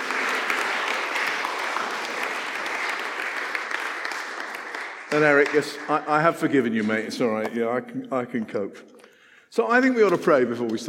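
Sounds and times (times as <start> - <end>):
audience applauding: 0.0 - 6.6
speech: 5.1 - 10.8.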